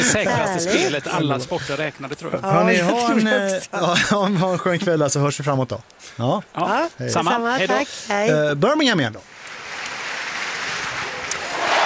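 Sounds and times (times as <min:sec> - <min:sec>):
speech: 0:00.1 - 0:09.4
stadium crowd cheering at Alexander Stadium high jump: 0:10.9 - 0:11.8.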